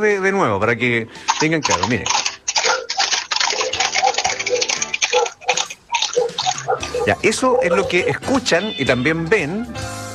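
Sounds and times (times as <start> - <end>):
speech: 0.0 - 2.3, 7.1 - 9.9
hoofbeats of loose horses passing: 1.3 - 8.3.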